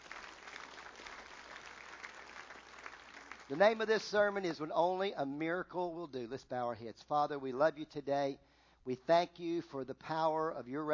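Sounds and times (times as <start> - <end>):
audience clapping: 0.0 - 3.9
speech: 3.5 - 10.9.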